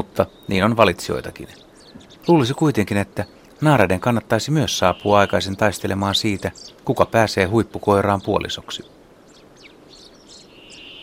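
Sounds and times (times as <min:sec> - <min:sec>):
common chaffinch song: 0:00.0 - 0:11.0
hiss: 0:00.0 - 0:11.0
speech: 0:00.2 - 0:09.0.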